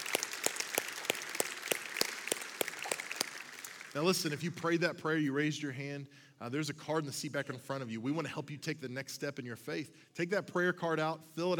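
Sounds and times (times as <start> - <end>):
audience applause: 0.0 - 4.3
speech: 4.0 - 11.5.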